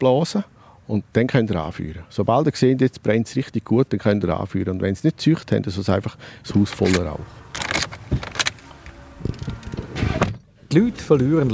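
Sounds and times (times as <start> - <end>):
speech: 0.0 - 7.4, 10.7 - 11.5
car engine rumble inside the vehicle on the way to a village: 6.3 - 11.5
soft clicks and bumps inside a car: 6.5 - 10.4.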